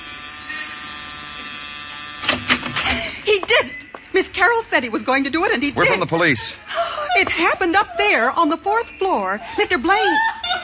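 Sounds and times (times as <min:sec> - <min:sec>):
door buzzer: 0:00.0 - 0:03.2
speech: 0:03.4 - 0:10.6
laughter: 0:05.8 - 0:08.4, 0:09.4 - 0:10.6.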